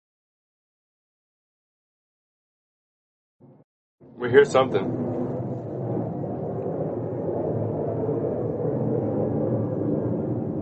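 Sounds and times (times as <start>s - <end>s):
airplane passing outside: 3.4s - 10.6s.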